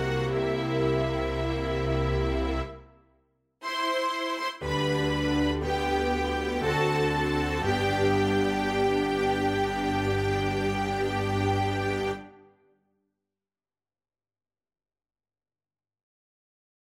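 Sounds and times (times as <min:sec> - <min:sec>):
string tango: 0:00.0 - 0:02.9, 0:03.6 - 0:12.4.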